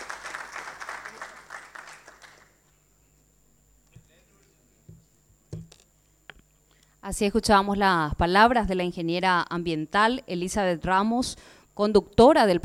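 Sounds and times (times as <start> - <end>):
audience applause: 0.0 - 2.6
speech: 7.1 - 12.6.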